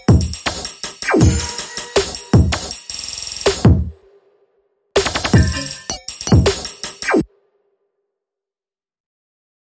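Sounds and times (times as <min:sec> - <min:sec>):
simple drums playing: 0:00.0 - 0:04.0, 0:05.0 - 0:07.2.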